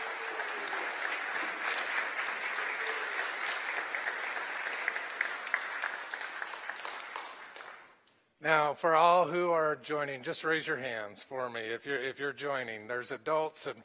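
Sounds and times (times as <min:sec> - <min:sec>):
crowd applause: 0:00.0 - 0:08.0
speech: 0:08.4 - 0:13.8.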